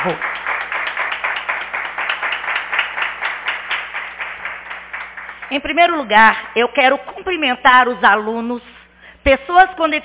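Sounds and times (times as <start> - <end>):
speech: 0.0 - 0.4, 5.5 - 10.0
audience applause: 0.0 - 5.5.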